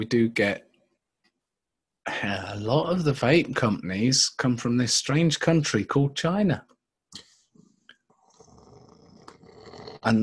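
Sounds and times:
speech: 0.0s - 0.7s, 2.1s - 7.3s, 10.0s - 10.2s
cat purring: 8.2s - 10.2s.

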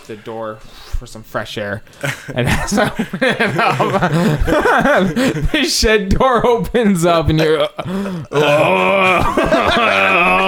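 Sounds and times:
speech: 0.1s - 10.4s
laughter: 2.0s - 10.4s
person imitating groaning and moaning: 7.9s - 10.4s.

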